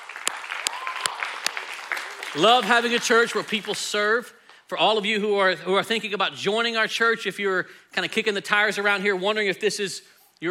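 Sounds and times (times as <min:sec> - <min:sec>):
church audience applauding: 0:00.0 - 0:04.2
speech: 0:02.3 - 0:10.5.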